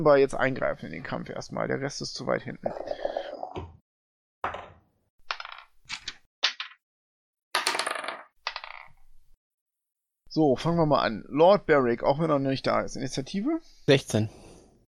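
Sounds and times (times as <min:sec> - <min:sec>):
speech: 0:00.0 - 0:03.8, 0:10.3 - 0:14.4
dice being rolled: 0:04.4 - 0:06.8, 0:07.6 - 0:09.2.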